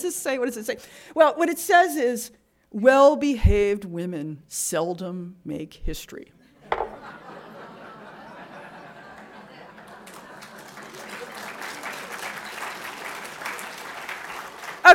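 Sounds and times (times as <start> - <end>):
speech: 0.0 - 6.4
laughter: 6.7 - 13.4
audience applause: 9.0 - 14.9.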